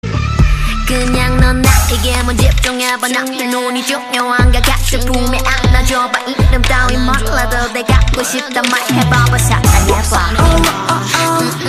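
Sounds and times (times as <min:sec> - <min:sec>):
K-pop rapping: 0:00.9 - 0:11.6.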